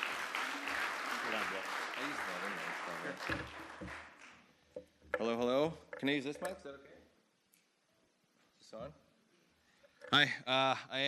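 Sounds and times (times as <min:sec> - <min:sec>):
audience clapping to welcome a newcomer to an outreach group: 0:00.0 - 0:04.5
speech: 0:03.0 - 0:04.1, 0:05.2 - 0:06.9, 0:08.7 - 0:09.0, 0:10.1 - 0:11.0.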